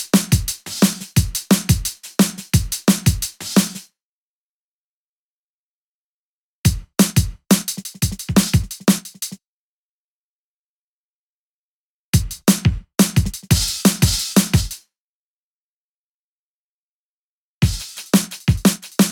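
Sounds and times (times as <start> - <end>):
drum patterns: 0.0 - 3.9, 6.7 - 9.4, 12.2 - 14.8, 17.6 - 19.1.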